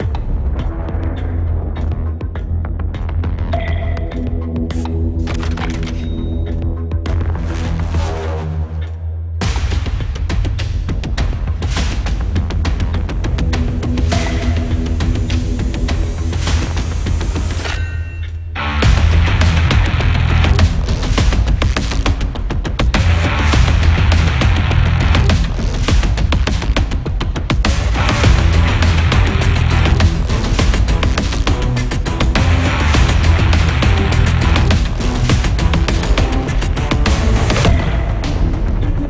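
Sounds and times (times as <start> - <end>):
battle background music with deep echo: 0.0 - 39.0.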